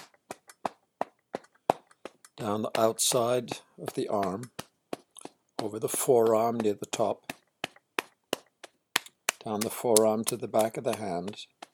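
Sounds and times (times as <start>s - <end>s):
right hand slapping trapezius muscle: 0.0s - 0.7s, 3.9s - 5.7s, 6.3s - 11.4s
speech: 2.4s - 4.6s, 5.6s - 7.3s, 9.4s - 11.6s.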